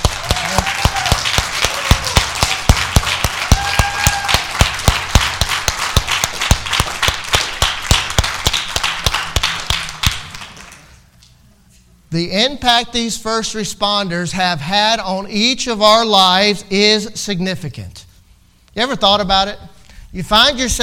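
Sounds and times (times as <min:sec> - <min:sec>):
audience applause: 0:00.0 - 0:11.0
speech: 0:12.2 - 0:18.0, 0:18.8 - 0:20.8.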